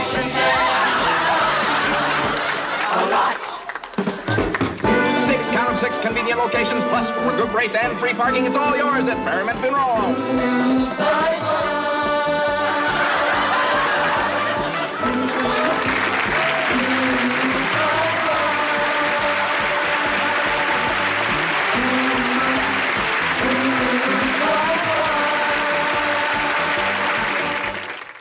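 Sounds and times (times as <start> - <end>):
recorded TV laugh track: 0.4 - 5.5, 12.6 - 25.8
recorded TV applause: 1.6 - 5.0, 13.5 - 28.1
speech: 5.8 - 11.8.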